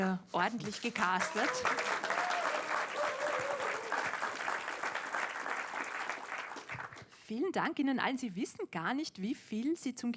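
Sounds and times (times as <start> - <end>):
speech: 0.0 - 2.3, 7.3 - 10.1
studio audience applause: 1.0 - 7.1.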